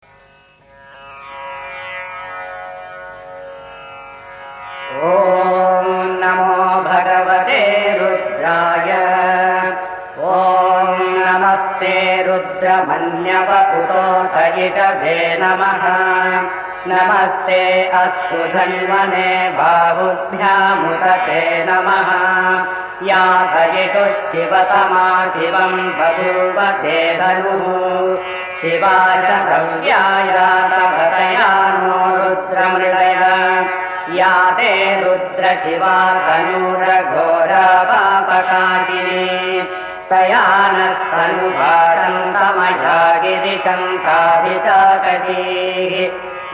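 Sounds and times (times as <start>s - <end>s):
chanting: 4.8s - 46.5s.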